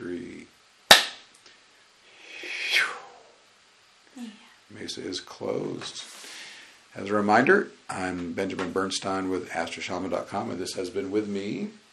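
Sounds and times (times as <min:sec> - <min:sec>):
hands clapping together: 0:00.9 - 0:01.2
soft hissing swoosh: 0:01.6 - 0:07.6
speech: 0:04.8 - 0:06.2, 0:07.0 - 0:11.8.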